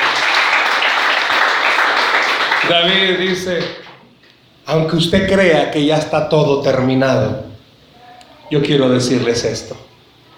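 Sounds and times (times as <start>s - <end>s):
audience applause: 0.0s - 3.4s
speech: 2.7s - 3.8s, 4.7s - 7.5s, 8.5s - 9.9s.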